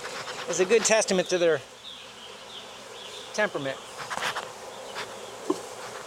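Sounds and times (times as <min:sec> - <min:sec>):
honeybees buzzing after being shaken into a hive box with their brood: 0:00.0 - 0:06.0
speech: 0:00.5 - 0:01.8, 0:03.4 - 0:04.2.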